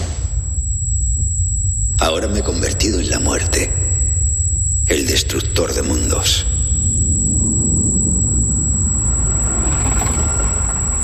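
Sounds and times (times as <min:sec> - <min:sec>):
thin high-pitched whine: 0:00.0 - 0:11.0
speech: 0:02.0 - 0:03.8, 0:04.9 - 0:06.5
atomic bomb explosion roar: 0:06.4 - 0:11.0.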